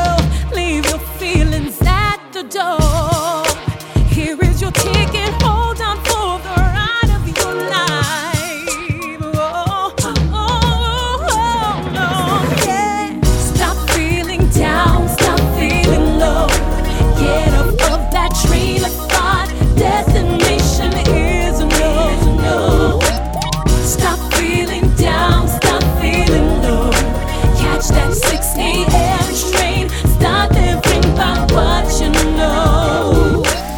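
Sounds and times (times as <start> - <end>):
R&B singer singing: 0.0 - 33.7.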